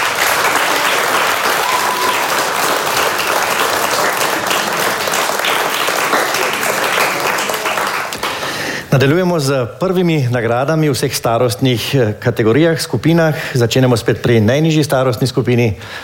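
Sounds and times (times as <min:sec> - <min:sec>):
audience applause for award winner: 0:00.0 - 0:08.8
speech: 0:08.9 - 0:16.0.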